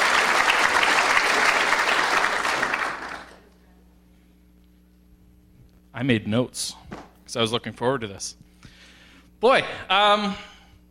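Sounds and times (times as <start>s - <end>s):
audience round of applause: 0.0s - 3.5s
speech: 6.0s - 8.5s, 9.4s - 10.5s.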